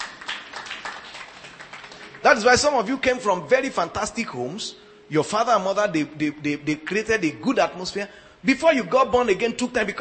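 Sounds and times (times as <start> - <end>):
scattered audience clapping: 0.0 - 3.2
speech: 2.2 - 9.9.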